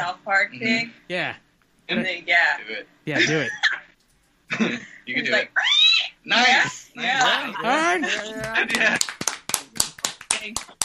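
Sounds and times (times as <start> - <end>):
speech: 0.0 - 3.6, 4.5 - 9.2, 10.4 - 10.7
laughter: 6.5 - 9.2
hand clapping: 7.2 - 10.8.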